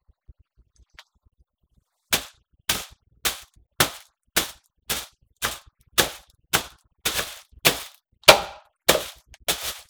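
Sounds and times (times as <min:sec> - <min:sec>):
plastic bag: 0:02.2 - 0:09.8.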